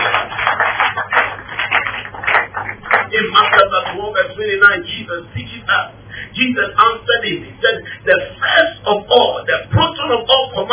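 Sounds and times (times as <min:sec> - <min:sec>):
audience clapping: 0:00.0 - 0:04.0
speech: 0:04.0 - 0:10.7.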